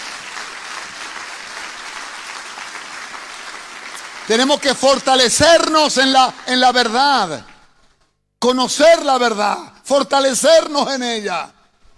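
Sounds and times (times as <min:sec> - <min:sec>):
audience applause: 0:00.0 - 0:05.7
speech: 0:04.3 - 0:07.5, 0:08.4 - 0:11.6.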